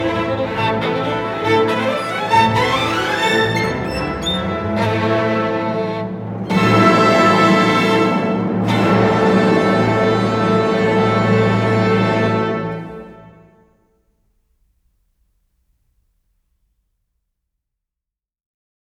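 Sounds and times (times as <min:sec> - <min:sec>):
violin concerto: 0:00.0 - 0:13.6.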